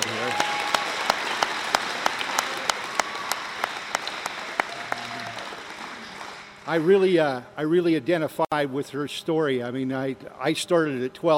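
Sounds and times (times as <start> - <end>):
audience applause: 0.0 - 7.0
speech: 6.7 - 11.3.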